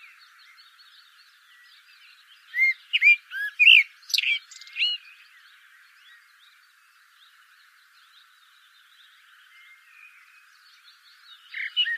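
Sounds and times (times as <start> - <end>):
Eurasian blackbird Turdus merula singing: 0.0 - 11.9.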